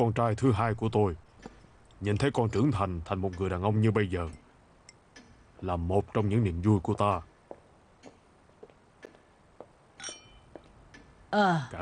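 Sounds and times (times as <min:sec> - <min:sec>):
speech: 0:00.0 - 0:01.2, 0:02.0 - 0:04.4, 0:05.6 - 0:07.3, 0:11.3 - 0:11.8
glasses clinking in a toast at a family gathering: 0:02.1 - 0:03.6, 0:10.0 - 0:10.6.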